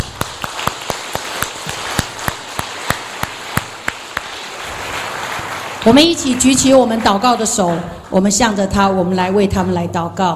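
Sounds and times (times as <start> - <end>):
crowd applause: 0.0 - 8.1
speech: 5.8 - 10.3.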